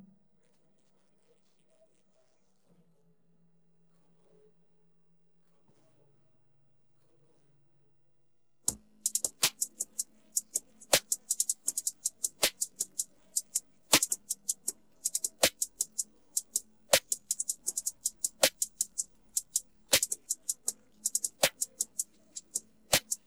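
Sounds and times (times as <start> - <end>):
drums: 8.7 - 23.2.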